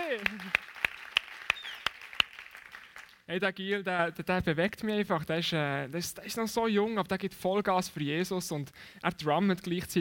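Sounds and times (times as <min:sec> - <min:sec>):
audience applause: 0:00.0 - 0:03.2
speech: 0:03.3 - 0:10.0.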